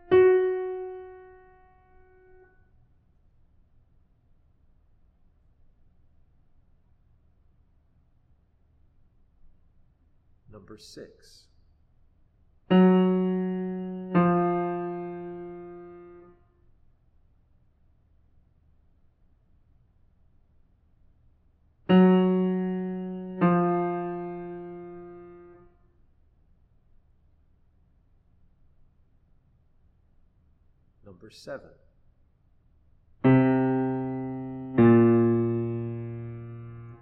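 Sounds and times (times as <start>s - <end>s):
musical intervals: 0.0s - 1.5s, 12.7s - 16.2s, 21.9s - 25.6s, 33.2s - 37.0s.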